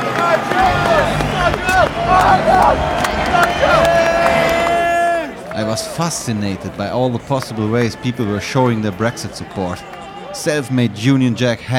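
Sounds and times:
excited crowd cheering: 0.0s - 10.8s
speech: 5.8s - 11.7s.

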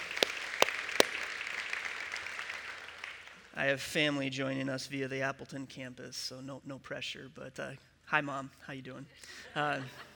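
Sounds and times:
audience round of applause: 0.0s - 3.2s
speech: 3.6s - 10.1s.

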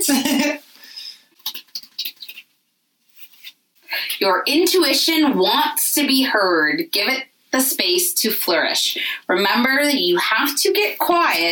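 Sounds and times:
speech: 0.0s - 0.4s, 4.2s - 11.5s
deck of cards being shuffled: 1.4s - 3.6s.

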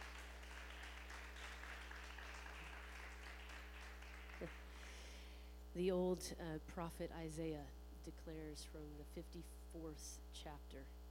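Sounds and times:
audience applause: 0.0s - 4.9s
speech: 4.4s - 4.6s, 5.7s - 11.0s.

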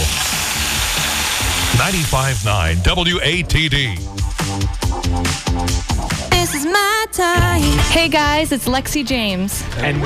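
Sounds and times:
food sizzling on a hot grill: 0.0s - 2.7s
speech: 1.9s - 5.9s, 6.6s - 10.0s.

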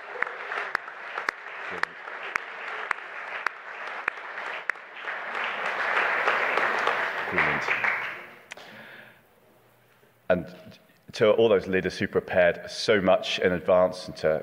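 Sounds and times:
audience applause: 0.0s - 8.4s
speech: 1.7s - 2.0s, 11.2s - 14.4s.

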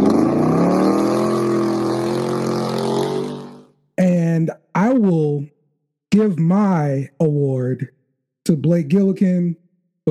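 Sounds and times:
loud truck engine revving: 0.0s - 3.7s
speech: 4.5s - 5.5s, 6.1s - 10.1s.

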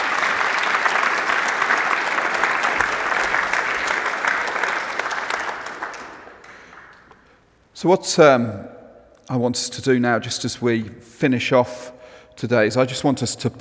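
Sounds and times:
audience applause: 0.0s - 7.2s
speech: 7.8s - 8.7s, 9.3s - 13.6s.

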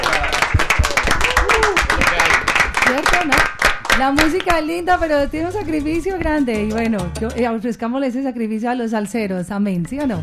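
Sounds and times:
audience applause: 0.0s - 4.7s
speech: 4.0s - 10.2s.

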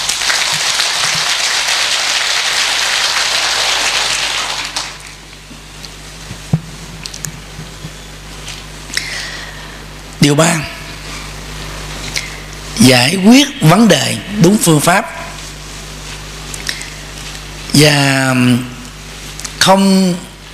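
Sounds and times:
crowd applause: 0.0s - 5.2s
speech: 10.2s - 10.8s, 12.8s - 15.2s, 17.8s - 18.7s, 19.6s - 20.3s.

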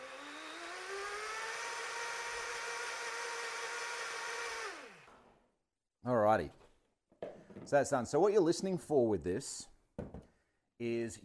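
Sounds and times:
blender on highest setting: 0.0s - 5.3s
speech: 6.0s - 6.6s, 7.6s - 10.2s, 10.8s - 11.2s.

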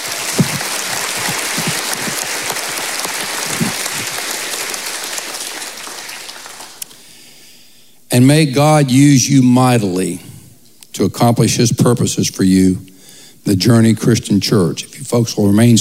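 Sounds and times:
audience applauding: 0.0s - 7.1s
speech: 8.2s - 10.2s, 11.0s - 15.7s.

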